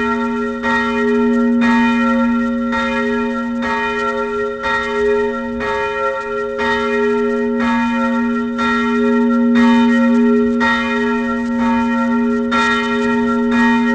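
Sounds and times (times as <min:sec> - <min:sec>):
bells ringing for evening prayer: 0:00.0 - 0:13.9.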